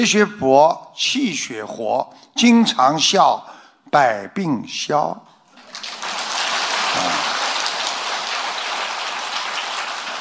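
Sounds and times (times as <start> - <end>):
speech: 0.0 - 5.3, 6.9 - 7.3
audience applause: 5.6 - 10.1.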